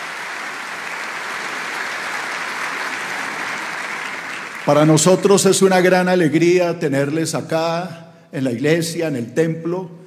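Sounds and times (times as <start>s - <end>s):
audience applause: 0.0s - 5.3s
speech: 4.7s - 10.0s.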